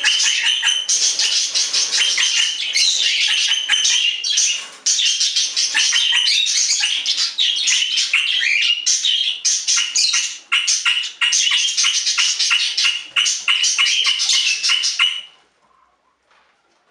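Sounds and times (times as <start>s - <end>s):
budgerigar chatter with squeaks, clicks and whistles: 0.0s - 15.4s.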